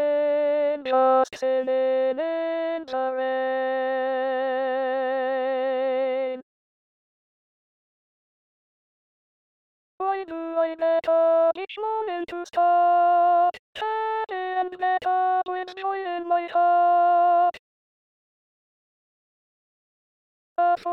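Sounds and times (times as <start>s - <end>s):
person singing: 0.0s - 6.4s, 10.0s - 17.6s, 20.6s - 20.9s.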